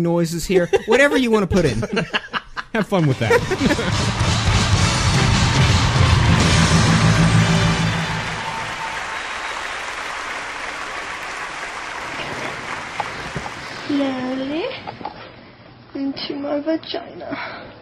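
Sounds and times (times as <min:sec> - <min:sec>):
speech: 0:00.0 - 0:04.2, 0:14.0 - 0:14.2, 0:16.5 - 0:17.7
laughter: 0:00.6 - 0:04.6
crowd noise: 0:03.2 - 0:13.9
applause: 0:03.4 - 0:14.7.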